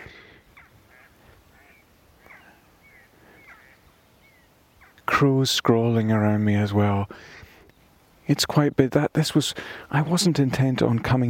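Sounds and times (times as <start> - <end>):
mallard ducks flying overhead: 0.0 - 5.0
speech: 5.2 - 7.4, 8.3 - 11.2.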